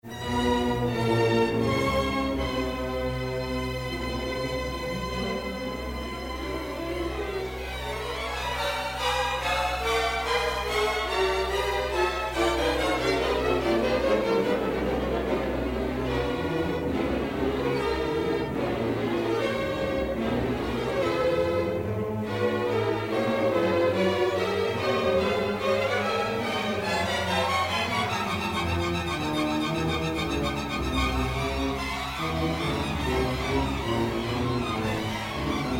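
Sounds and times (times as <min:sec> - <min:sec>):
string orchestra: 0:00.0 - 0:35.7.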